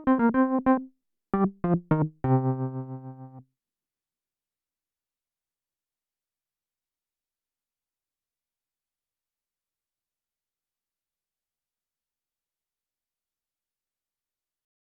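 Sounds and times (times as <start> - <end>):
Wurli electric piano: 0.0 - 3.4.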